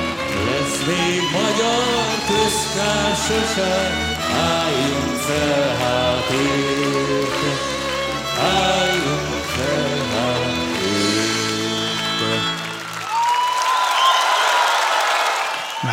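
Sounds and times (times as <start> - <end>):
song with singing and instruments: 0.0 - 13.3
audience applause: 0.0 - 15.9
speech: 0.8 - 7.8, 8.4 - 10.5
whistle: 15.4 - 15.9.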